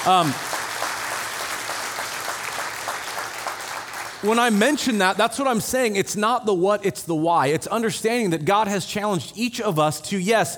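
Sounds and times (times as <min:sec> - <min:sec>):
speech: 0:00.0 - 0:00.6, 0:04.2 - 0:10.5
audience applause: 0:00.0 - 0:05.2.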